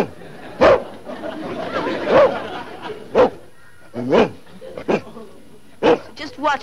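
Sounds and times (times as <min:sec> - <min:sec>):
laughter: 0:00.0 - 0:03.6, 0:04.4 - 0:05.8
low murmur: 0:00.0 - 0:06.6
police dog barking: 0:00.6 - 0:00.9, 0:02.1 - 0:02.5, 0:03.1 - 0:03.4, 0:04.0 - 0:05.0, 0:05.8 - 0:06.2.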